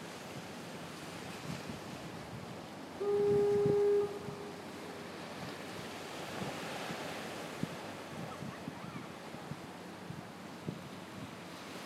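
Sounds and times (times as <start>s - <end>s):
waves washing and crashing: 0.0s - 11.8s
wind: 0.0s - 11.8s
fog horn at Marshall Point Lighthouse in Port Clyde, ME: 3.0s - 5.0s.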